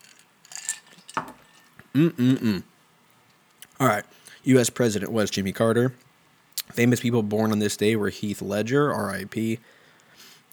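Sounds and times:
person sipping a drink: 0.5s - 2.7s
speech: 2.0s - 2.7s, 3.8s - 6.1s, 6.7s - 9.8s.

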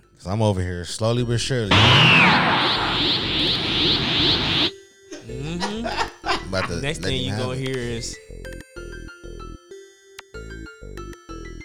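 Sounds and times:
speech: 0.2s - 3.8s, 6.5s - 8.6s
video game character flying through beams: 1.7s - 4.7s
laughter: 5.1s - 8.1s.

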